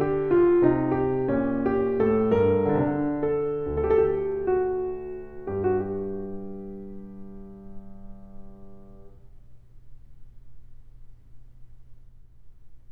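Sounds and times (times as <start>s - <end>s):
piano invention: 0.0s - 9.3s.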